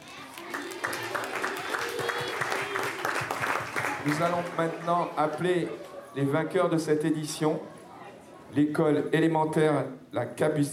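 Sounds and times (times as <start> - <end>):
children applauding: 0.0 - 5.3
speech: 4.0 - 7.8, 8.5 - 10.7.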